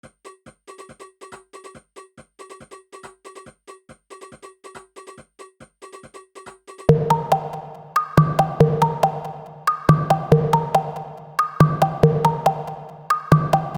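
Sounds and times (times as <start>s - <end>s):
electronic bleeps and bloops: 6.9s - 13.7s.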